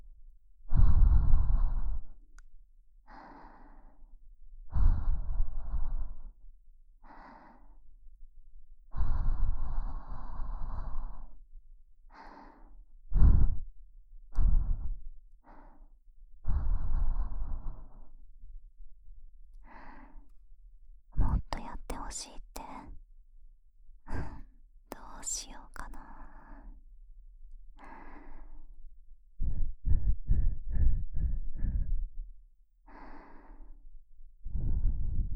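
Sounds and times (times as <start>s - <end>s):
sweet soft breathing: 0.7s - 2.2s, 3.0s - 6.4s, 7.0s - 7.9s, 8.9s - 11.4s, 12.1s - 13.7s, 14.4s - 18.2s, 19.6s - 20.4s, 24.1s - 26.8s, 27.8s - 28.8s, 29.4s - 35.3s.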